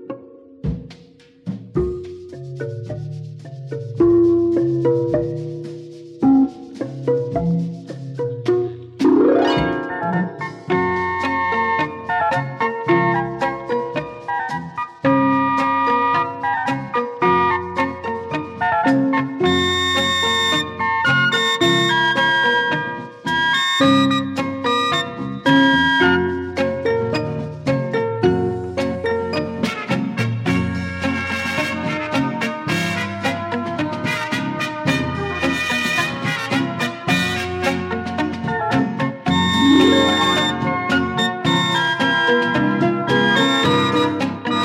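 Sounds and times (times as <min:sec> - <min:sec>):
bongos: 0:00.7 - 0:44.6.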